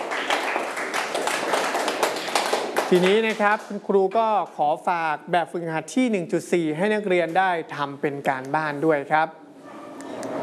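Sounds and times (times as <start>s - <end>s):
classroom students clapping: 0.0s - 3.8s
speech: 2.9s - 9.4s.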